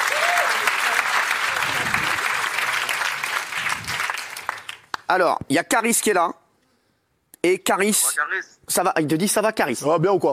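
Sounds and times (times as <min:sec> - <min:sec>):
studio audience applause: 0:00.0 - 0:05.0
speech: 0:05.1 - 0:06.4, 0:07.4 - 0:10.3.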